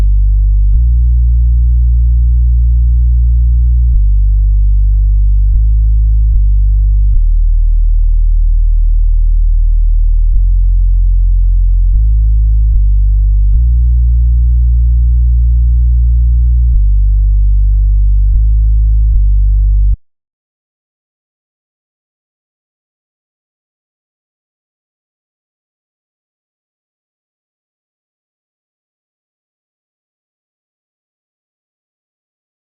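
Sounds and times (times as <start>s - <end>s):
bass: 0.0s - 20.1s.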